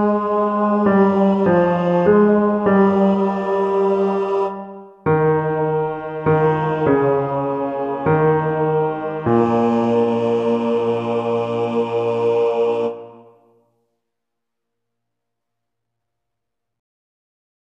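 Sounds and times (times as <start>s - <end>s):
bass playing hymn: 0.0s - 13.3s.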